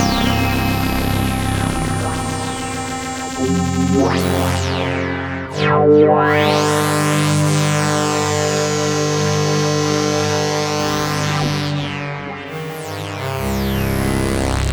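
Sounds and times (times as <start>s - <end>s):
Korg Prologue synth with dirty ring modulation: 0.0s - 14.6s.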